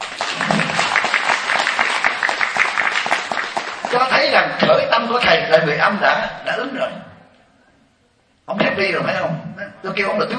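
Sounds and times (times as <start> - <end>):
audience applause: 0.0 - 4.4
speech: 3.9 - 7.1, 8.5 - 10.3.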